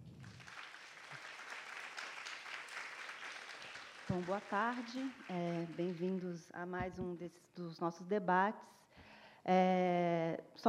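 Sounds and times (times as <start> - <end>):
applause: 0.0 - 6.3
speech: 4.1 - 8.8, 9.4 - 10.6.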